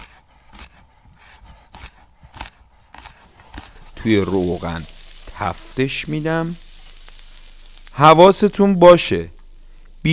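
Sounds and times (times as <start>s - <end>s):
knife chopping garlic cloves on a board: 0.0s - 0.8s, 1.7s - 3.7s
speech: 4.0s - 6.6s, 8.0s - 9.4s.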